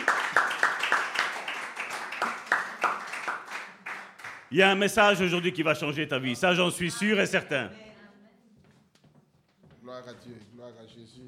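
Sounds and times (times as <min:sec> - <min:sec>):
church audience clapping: 0:00.0 - 0:05.2
speech: 0:04.5 - 0:07.8, 0:10.1 - 0:11.2.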